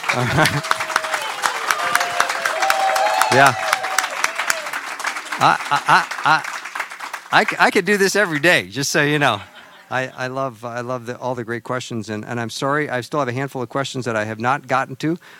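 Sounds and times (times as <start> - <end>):
laughter: 0.0 - 2.2, 5.0 - 6.7, 9.2 - 10.4
crowd clapping: 0.0 - 9.2
speech: 0.1 - 0.8, 3.3 - 3.6, 5.4 - 6.5, 7.3 - 15.3.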